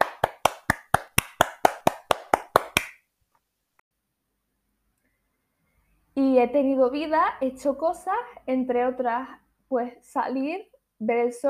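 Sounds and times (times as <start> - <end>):
hand clapping by one person: 0.0 - 3.0
speech: 6.4 - 11.4.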